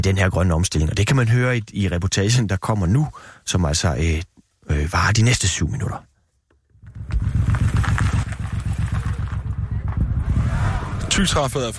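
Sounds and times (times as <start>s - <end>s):
speech: 0.0s - 6.1s, 11.2s - 11.7s
motorcycle engine idling at a motorcycle rally: 6.7s - 11.0s.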